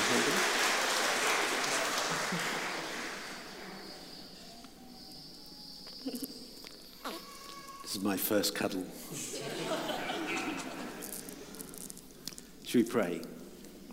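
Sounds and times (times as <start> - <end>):
round of applause: 0.0 - 3.9
laughter: 1.3 - 3.7, 9.1 - 11.5
speech: 7.9 - 9.6, 12.7 - 13.4.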